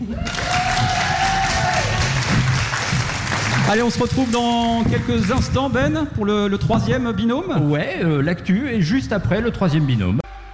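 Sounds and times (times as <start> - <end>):
audience applause: 0.0 - 5.6
speech: 3.7 - 10.2.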